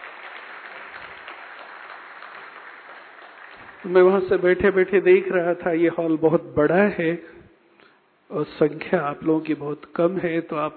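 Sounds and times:
faint audience clapping in a large hall at a meditation and yoga gathering: 0.0s - 4.8s
speech: 3.8s - 7.4s, 8.3s - 10.7s.

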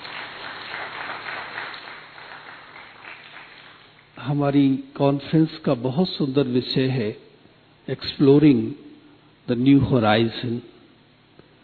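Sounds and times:
audience clapping loudly: 0.0s - 4.2s
speech: 4.2s - 7.3s, 7.9s - 8.8s, 9.5s - 10.7s.

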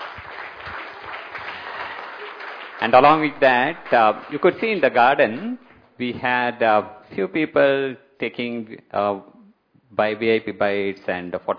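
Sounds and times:
audience clapping to welcome a speaker onto a stage: 0.0s - 5.8s
speech: 2.8s - 9.3s, 9.9s - 11.5s.

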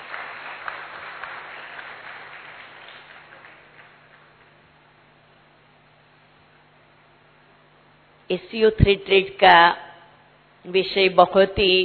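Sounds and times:
audience applause: 0.0s - 4.6s
speech: 8.3s - 9.8s, 10.6s - 11.8s.

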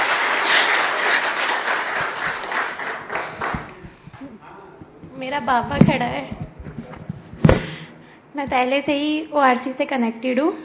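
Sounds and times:
audience applause: 0.0s - 4.0s
speech: 5.3s - 6.4s, 8.4s - 10.6s.

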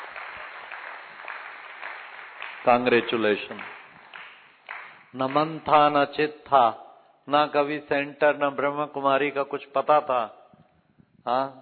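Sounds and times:
audience applause for students standing in their places: 0.0s - 5.6s
speech: 2.6s - 3.8s, 5.2s - 10.4s, 11.2s - 11.6s.

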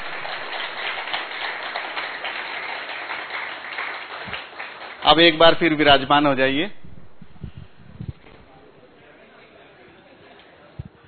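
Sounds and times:
participants clapping at a spiritual gathering session: 0.0s - 5.9s
speech: 5.1s - 6.8s.

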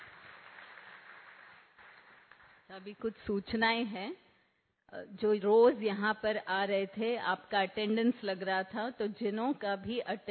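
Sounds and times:
audience clapping in honour of a team manager: 0.0s - 2.8s
speech: 2.7s - 4.2s, 4.9s - 10.2s.

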